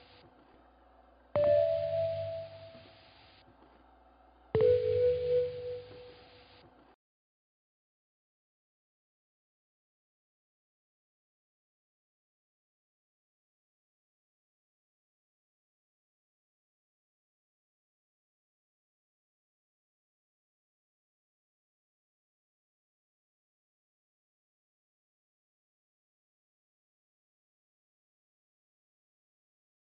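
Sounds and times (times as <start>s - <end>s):
music loop in A minor at 150 BPM: 1.4s - 2.9s, 4.6s - 6.3s.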